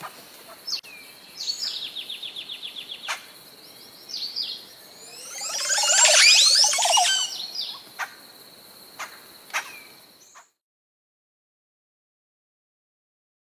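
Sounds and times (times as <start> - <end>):
jacu calling: 5.0 - 7.8.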